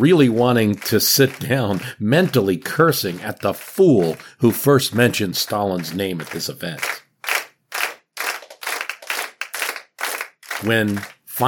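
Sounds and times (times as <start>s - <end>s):
speech: 0.0s - 7.0s, 10.6s - 11.4s
audience clapping: 0.0s - 11.4s.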